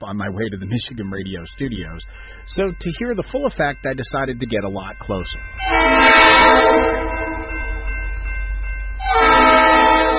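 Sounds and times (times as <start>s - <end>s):
speech: 0.0s - 7.1s
deep rumble of the passing train: 0.0s - 10.1s
train horn sounding while approaching a street-grade crossing without gates: 5.6s - 7.5s, 9.0s - 10.1s.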